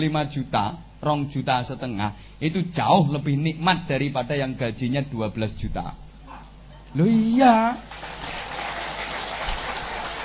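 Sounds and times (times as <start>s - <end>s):
speech: 0.0s - 6.0s, 6.9s - 8.1s
audience applause: 7.9s - 10.2s.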